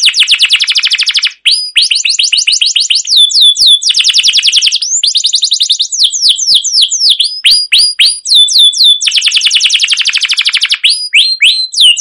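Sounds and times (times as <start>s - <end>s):
canary singing: 0.0s - 11.9s.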